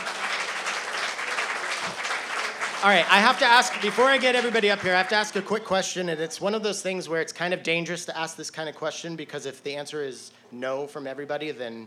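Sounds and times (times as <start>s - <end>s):
crowd applause: 0.0s - 5.4s
speech: 2.8s - 11.8s.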